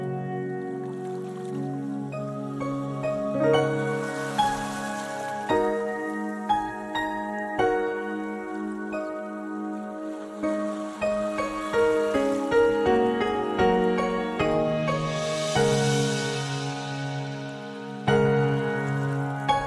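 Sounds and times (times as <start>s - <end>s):
calm meditation music with sustained layered tones: 0.0s - 19.6s
soft water sounds: 3.5s - 5.9s, 10.4s - 19.6s.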